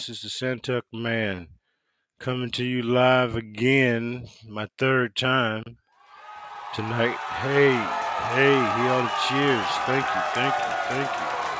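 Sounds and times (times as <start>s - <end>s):
speech: 0.0s - 1.6s, 2.2s - 5.8s, 6.7s - 11.4s
audience cheering: 6.0s - 11.5s.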